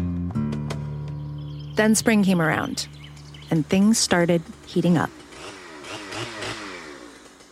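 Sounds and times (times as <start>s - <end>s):
speech: 1.8s - 5.2s
chainsaw cutting trees: 3.0s - 7.5s.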